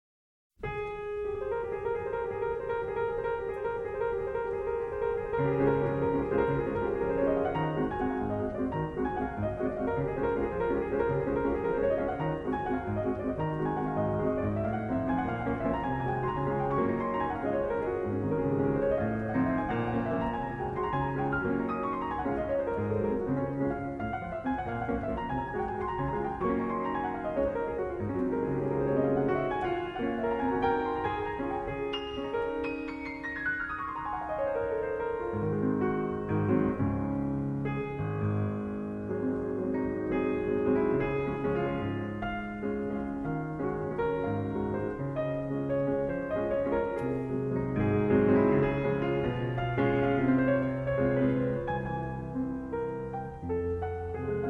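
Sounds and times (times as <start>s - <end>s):
piano waltz in D-flat major: 0.5s - 54.4s.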